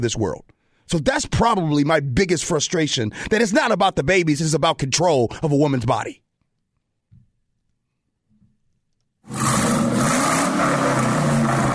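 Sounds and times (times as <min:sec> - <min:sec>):
speech: 0:00.0 - 0:06.2
extremely loud vehicle: 0:09.3 - 0:11.7.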